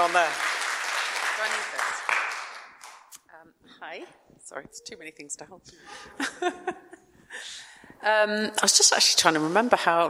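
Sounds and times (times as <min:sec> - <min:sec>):
speech: 0:00.0 - 0:00.5, 0:01.4 - 0:02.0, 0:03.5 - 0:10.0
audience applause: 0:00.0 - 0:03.0
laughter: 0:05.9 - 0:07.4.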